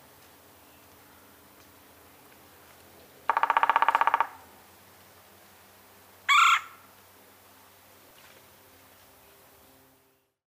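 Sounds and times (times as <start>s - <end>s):
Red-bellied Woodpecker Melanerpes carolinus: 3.3s - 4.4s.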